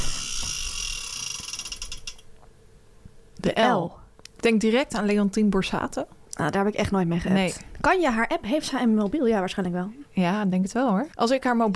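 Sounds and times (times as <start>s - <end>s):
spinning ratcheting wheel clicking: 0.0s - 2.3s
speech: 3.4s - 11.7s.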